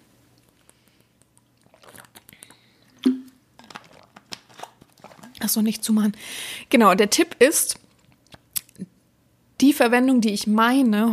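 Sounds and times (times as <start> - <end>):
person sipping a drink: 0.4 - 5.4
speech: 5.4 - 7.8, 9.6 - 11.1.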